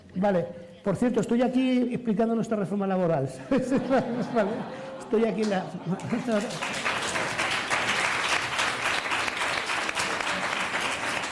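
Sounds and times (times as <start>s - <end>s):
speech: 0.2s - 6.9s
laughter: 3.4s - 8.0s
audience applause: 6.0s - 11.3s.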